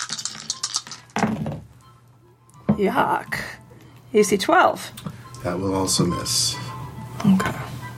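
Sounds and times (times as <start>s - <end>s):
plastic dice clattering and skittering across a table: 0.0s - 1.2s
speech: 2.8s - 3.4s, 4.1s - 7.8s.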